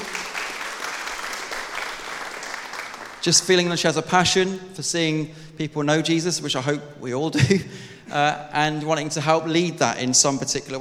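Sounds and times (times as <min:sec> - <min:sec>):
audience clapping: 0:00.0 - 0:03.9
speech: 0:03.2 - 0:10.7
laughter: 0:07.4 - 0:08.3.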